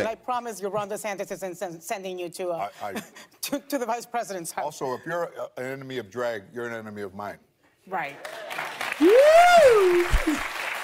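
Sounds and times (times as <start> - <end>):
speech: 0.0 - 10.6
thunderous audience applause: 8.2 - 10.8.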